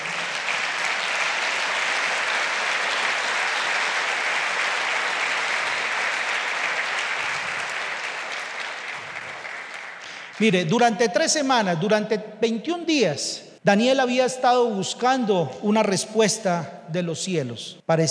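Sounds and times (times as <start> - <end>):
loud audience applause: 0.0 - 10.6
speech: 10.4 - 18.0.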